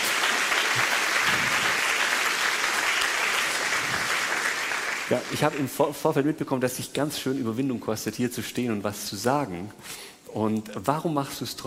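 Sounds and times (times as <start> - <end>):
audience clapping: 0.0 - 5.8
speech: 5.1 - 11.6.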